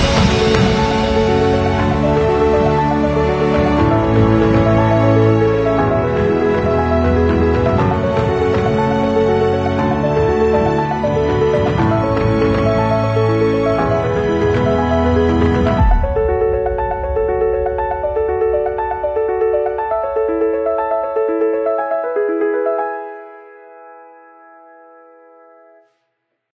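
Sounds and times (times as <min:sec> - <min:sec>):
bass: 0:00.0 - 0:16.5
cinematic booms: 0:00.0 - 0:21.0
epic orchestral film trailer music: 0:00.0 - 0:23.8.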